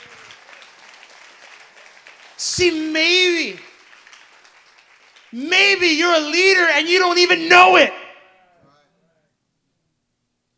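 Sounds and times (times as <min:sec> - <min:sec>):
audience clapping: 0:00.0 - 0:08.2
speech: 0:02.4 - 0:03.7, 0:05.3 - 0:08.0.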